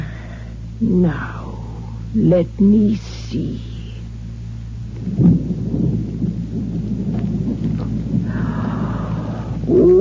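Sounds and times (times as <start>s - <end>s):
speech: 0.8s - 1.5s, 2.1s - 3.7s
thunderstorm blowing up outside: 4.8s - 10.0s.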